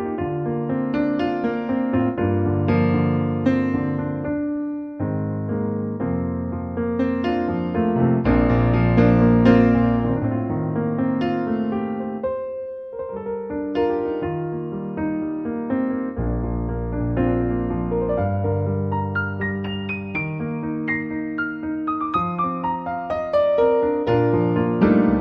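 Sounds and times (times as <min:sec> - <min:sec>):
concert piano: 0:00.0 - 0:25.1.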